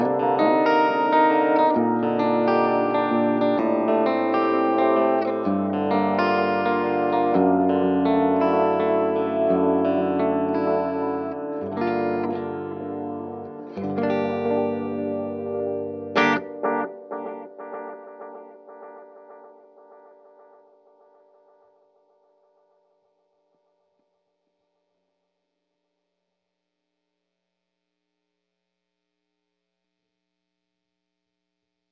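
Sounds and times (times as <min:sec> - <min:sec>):
dry guitar with bright bouncy oil can echo repeats: 0:00.0 - 0:22.6.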